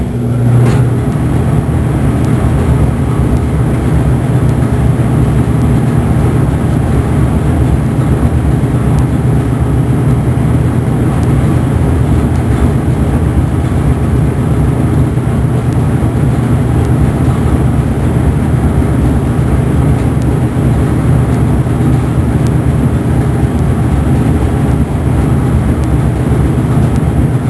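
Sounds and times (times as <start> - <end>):
furnace starting and running: 0.0 - 27.4.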